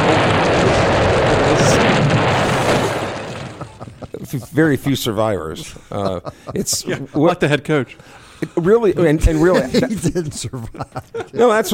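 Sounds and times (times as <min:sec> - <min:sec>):
train crash: 0:00.0 - 0:05.6
laughter: 0:03.3 - 0:07.8, 0:08.4 - 0:11.7
speech: 0:04.3 - 0:11.7.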